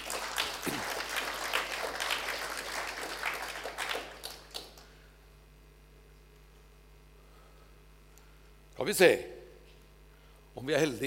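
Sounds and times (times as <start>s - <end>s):
audience applause: 0.0s - 4.9s
speech: 8.8s - 9.3s, 10.6s - 11.0s.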